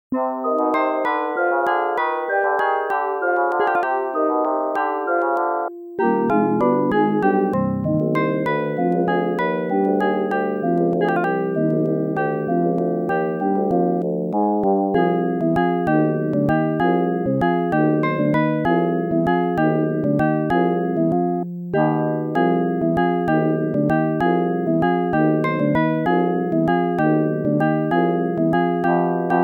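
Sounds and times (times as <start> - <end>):
waltz music: 0.2 - 29.4.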